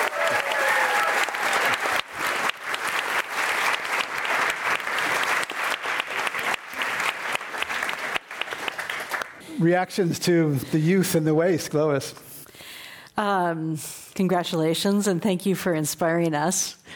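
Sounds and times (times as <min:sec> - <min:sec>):
audience applause greeting a guest at the end of an interview: 0:00.0 - 0:09.4
speech: 0:09.6 - 0:12.3, 0:13.2 - 0:16.9.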